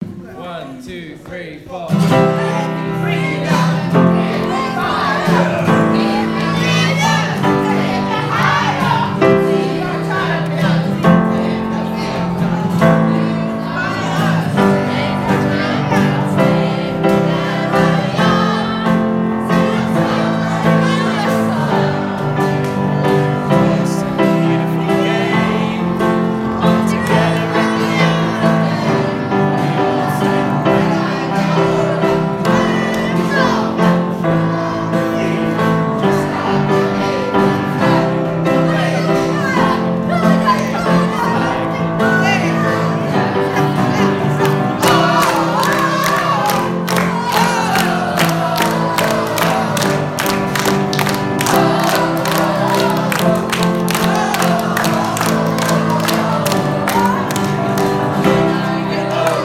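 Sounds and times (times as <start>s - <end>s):
school choir singing: 2.0s - 59.4s.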